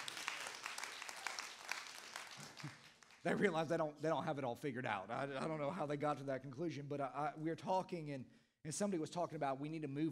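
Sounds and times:
audience clapping: 0.0s - 3.6s
speech: 2.6s - 10.1s.

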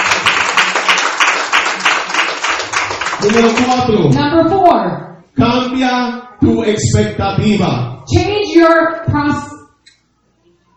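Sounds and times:
audience applause: 0.0s - 3.9s
speech: 3.2s - 9.5s.

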